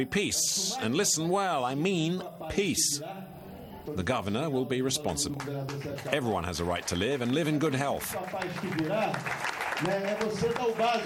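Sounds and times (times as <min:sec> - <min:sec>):
speech: 0:00.0 - 0:11.0
applause: 0:05.3 - 0:11.0.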